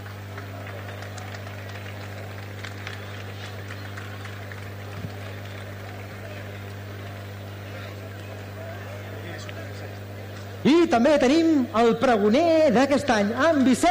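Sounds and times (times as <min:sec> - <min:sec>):
crowd clapping: 0:00.0 - 0:10.6
constant low electrical hum: 0:00.0 - 0:13.8
speech: 0:10.9 - 0:13.8.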